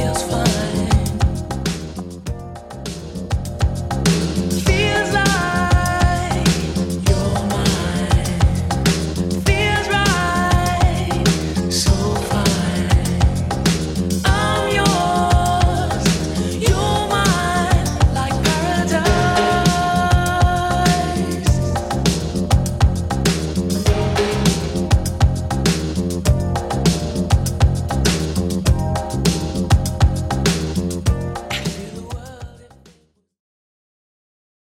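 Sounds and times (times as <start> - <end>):
80s Redrum drum machine beat: 0.0 - 32.8.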